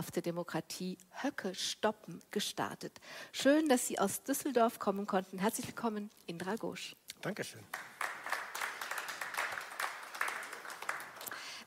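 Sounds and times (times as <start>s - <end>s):
speech: 0.0s - 8.0s
live audience applause: 7.7s - 11.6s.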